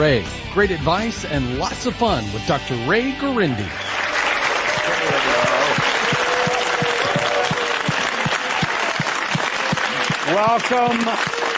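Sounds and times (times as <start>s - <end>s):
speech: 0.0s - 3.9s, 10.3s - 11.4s
studio audience applause during a live talk radio show: 3.6s - 11.5s.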